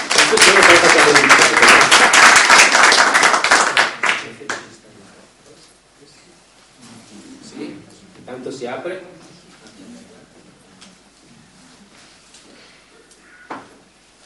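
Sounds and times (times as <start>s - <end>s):
loud audience applause for a professor at a foundation event: 0.0s - 4.6s
speech: 0.3s - 1.4s, 8.6s - 9.2s.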